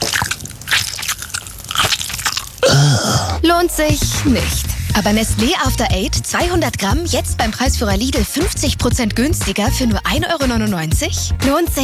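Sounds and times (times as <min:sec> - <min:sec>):
crunching on a peppermint tea bag: 0:00.0 - 0:03.4
low voiced grunt: 0:02.6 - 0:03.4
speech: 0:03.4 - 0:11.8.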